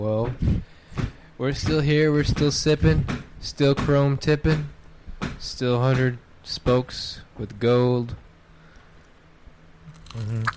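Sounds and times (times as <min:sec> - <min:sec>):
speech: 0:00.0 - 0:00.7, 0:01.4 - 0:04.8, 0:05.4 - 0:08.2, 0:10.1 - 0:10.5
all-crust pizza crust crackling as it is bitten: 0:09.9 - 0:10.5
voiced sound close to the mouth: 0:09.9 - 0:10.5.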